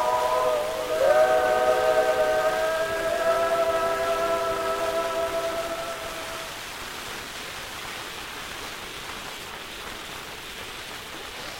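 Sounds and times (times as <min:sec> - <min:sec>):
gramophone playing: 0:00.0 - 0:06.5.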